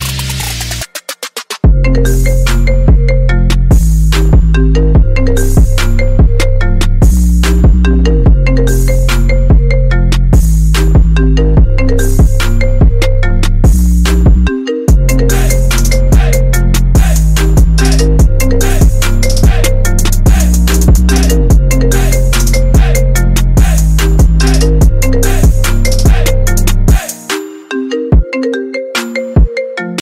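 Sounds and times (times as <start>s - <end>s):
iPhone ringtone trap remix: 0.0s - 29.9s.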